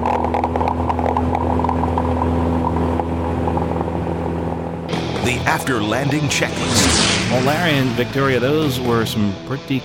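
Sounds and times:
seaplane engine revving for takeoff: 0:00.2 - 0:05.5
speech: 0:05.5 - 0:09.8.

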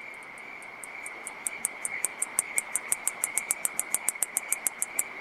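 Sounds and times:
male katydid rubbing forewings together, clicking: 0:00.1 - 0:05.1.

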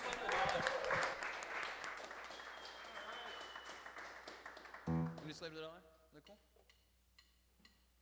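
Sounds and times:
audience applause at an Awesome Music Foundation concert: 0:00.0 - 0:05.4
speech: 0:05.4 - 0:06.5.

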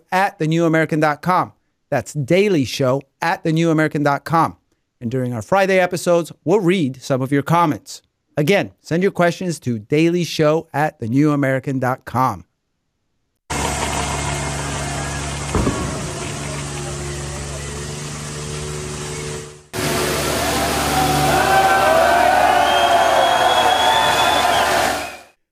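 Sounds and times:
speech: 0:00.1 - 0:12.5
heavy tractor engines rumbling: 0:13.5 - 0:23.5
whining rising engine tones: 0:13.5 - 0:25.2
sharp thud: 0:15.5 - 0:16.9.

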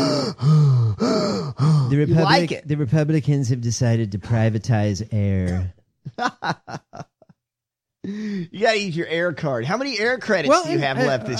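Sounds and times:
person demonstrating deep breathing with sighing, groaning tone: 0:00.0 - 0:02.0, 0:08.0 - 0:08.5
speech: 0:01.9 - 0:06.8, 0:08.0 - 0:11.3
laughter: 0:06.1 - 0:07.4, 0:10.5 - 0:11.3.

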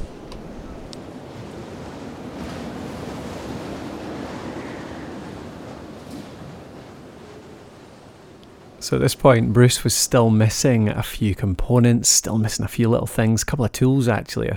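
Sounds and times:
strong wind blowing over a tent: 0:00.0 - 0:08.8
speech: 0:08.8 - 0:14.5.

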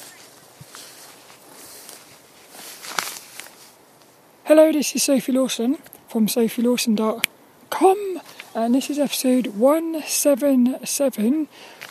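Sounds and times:
footsteps walking through brambles: 0:00.0 - 0:04.2, 0:08.2 - 0:09.6, 0:11.7 - 0:11.8
speech: 0:04.5 - 0:11.8.

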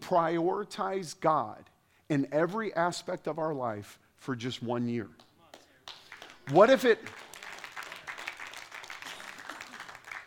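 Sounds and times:
speech: 0:00.1 - 0:05.3, 0:06.5 - 0:07.2
audience applause: 0:05.9 - 0:10.2.

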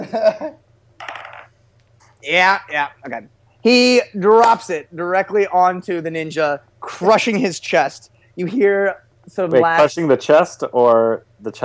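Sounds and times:
person laughing: 0:00.0 - 0:00.6
speech: 0:00.1 - 0:00.7, 0:02.2 - 0:11.6
dice rolling on table: 0:01.0 - 0:01.5.

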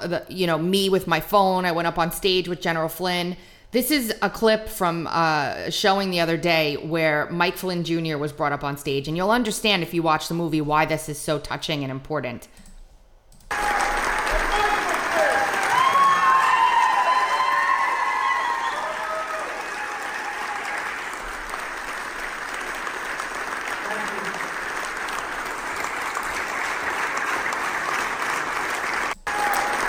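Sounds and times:
speech: 0:00.0 - 0:12.6
large standing crowd applauding and cheering: 0:13.5 - 0:29.8.

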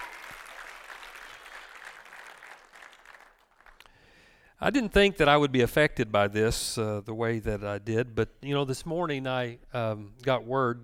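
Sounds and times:
audience applause: 0:00.0 - 0:03.9
speech: 0:04.6 - 0:10.8.

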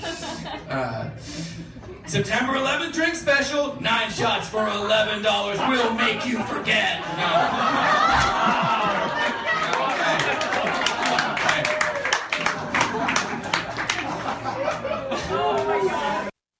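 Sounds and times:
laughter: 0:00.0 - 0:02.2, 0:05.3 - 0:16.4
speech: 0:00.7 - 0:09.4
audience applause after a joke: 0:07.9 - 0:16.3.

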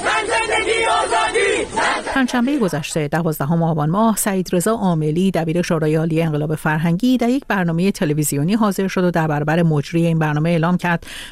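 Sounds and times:
protest crowd chanting a slogan in the street: 0:00.0 - 0:02.9
speech: 0:02.2 - 0:11.3.

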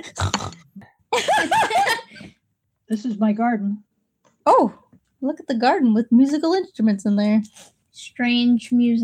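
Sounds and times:
person imitating a pig: 0:00.1 - 0:00.7
speech: 0:02.9 - 0:03.9, 0:04.5 - 0:09.0.

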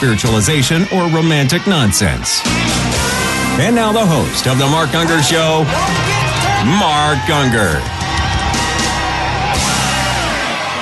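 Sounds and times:
speech: 0:00.0 - 0:08.0
crowd cheering wildly: 0:00.0 - 0:10.7.

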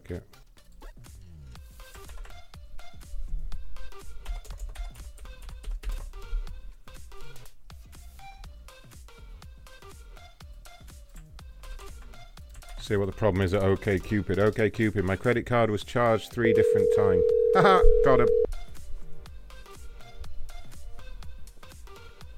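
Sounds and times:
speech: 0:00.1 - 0:00.4, 0:12.9 - 0:18.4
typing a phone number on a computer keyboard: 0:01.9 - 0:02.4, 0:04.2 - 0:06.2, 0:11.1 - 0:12.9.

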